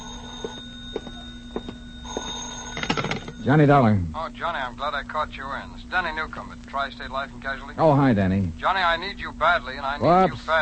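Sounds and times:
telephone ringing: 0.0s - 4.0s
speech: 3.4s - 10.6s.

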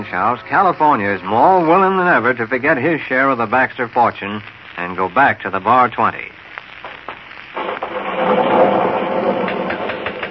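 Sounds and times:
speech: 0.1s - 6.4s
thunder rumbling: 7.6s - 10.2s.

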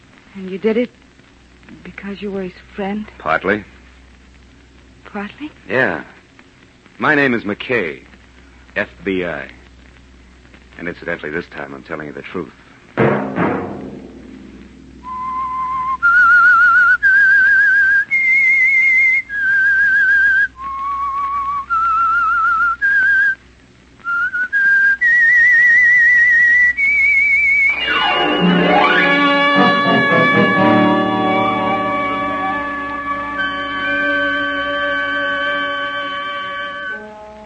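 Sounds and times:
low steady hum: 0.0s - 37.4s
speech: 0.4s - 1.0s, 1.7s - 3.8s, 5.1s - 6.2s, 7.0s - 8.1s, 8.8s - 9.6s, 10.8s - 13.1s
whistled theme melody: 15.0s - 23.4s, 24.1s - 37.4s
loud full orchestral chord: 27.7s - 37.4s.

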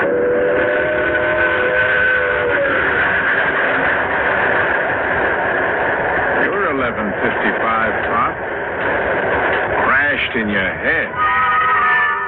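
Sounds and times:
long sustained train whistle with harmonic tones: 0.0s - 4.1s, 11.1s - 12.2s
train rumbling in: 0.0s - 12.2s.

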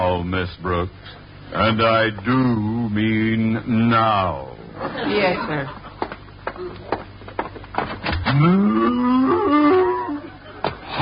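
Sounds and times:
speech: 0.0s - 5.8s, 6.6s - 7.0s, 7.8s - 9.8s
laughter: 4.7s - 7.0s, 8.8s - 10.9s
cow mooing: 8.3s - 10.2s.

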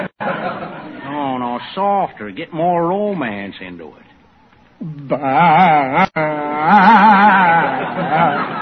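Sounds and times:
laughter: 0.0s - 1.4s, 5.0s - 8.6s
speech: 1.8s - 4.1s, 4.8s - 8.5s
man imitating a goat's mating call: 4.8s - 7.7s.

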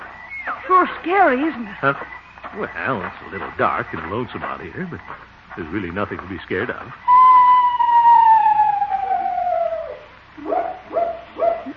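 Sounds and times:
screech owl call: 0.0s - 2.9s, 7.0s - 11.7s
speech: 0.7s - 7.1s.

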